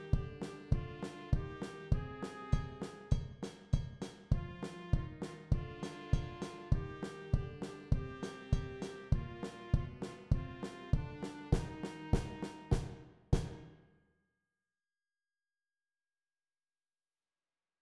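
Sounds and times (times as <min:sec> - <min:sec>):
recruits marching drums: 0:00.0 - 0:13.6.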